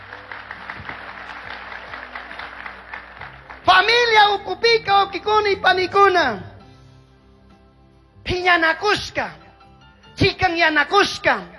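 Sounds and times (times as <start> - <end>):
audience applause: 0.0 - 4.1
speech: 3.8 - 6.5, 8.3 - 9.4, 10.2 - 11.5.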